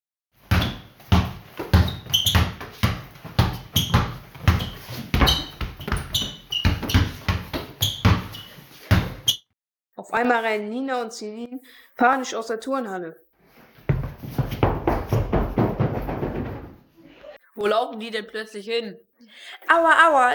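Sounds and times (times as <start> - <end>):
basketball bouncing during a gym game: 0.4 - 9.4, 13.9 - 16.8
speech: 10.0 - 13.2, 17.6 - 20.3.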